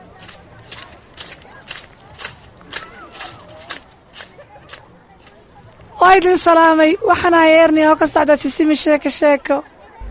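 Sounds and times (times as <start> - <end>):
footsteps on a school playground: 0.0 - 5.4
children chattering on a school playground: 0.0 - 10.0
speech: 6.1 - 9.7.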